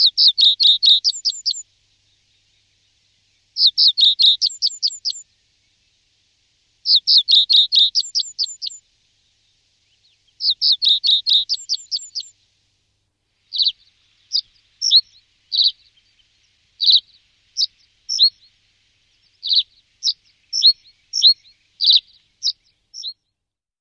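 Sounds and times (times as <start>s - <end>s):
common reed bunting song: 0.0s - 1.6s, 3.6s - 5.2s, 6.8s - 8.8s, 10.0s - 12.3s, 13.4s - 23.2s.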